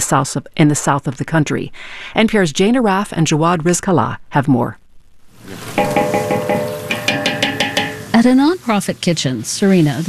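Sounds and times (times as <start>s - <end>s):
speech: 0.1s - 4.8s, 8.2s - 10.0s
slivered almonds sautéing in margarine in a huge aluminum pot outdoors: 5.3s - 10.0s.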